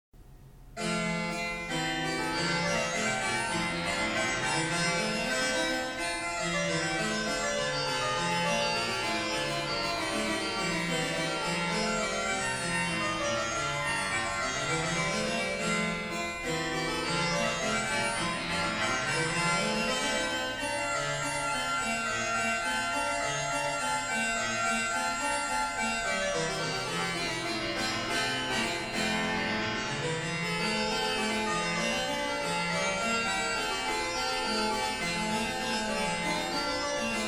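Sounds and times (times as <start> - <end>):
harpsichord concerto: 0.6 - 37.2.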